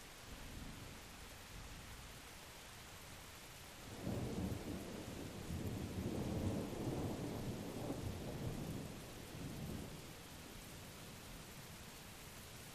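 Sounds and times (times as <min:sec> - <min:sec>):
rain at Blue Mountain Lake Adirondacks New York: 0:00.0 - 0:12.7
continuous thunder at Blue Mountain Lake Adirondacks New York: 0:03.9 - 0:11.5.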